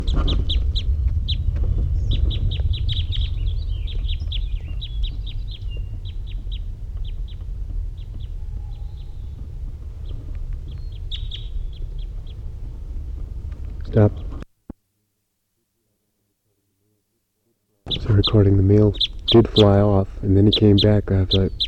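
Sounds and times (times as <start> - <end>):
wild bird calling from trees: 0.0 - 12.6, 17.9 - 21.6
low rumble: 0.0 - 14.5, 17.9 - 21.6
speech: 14.0 - 14.2, 18.3 - 21.6.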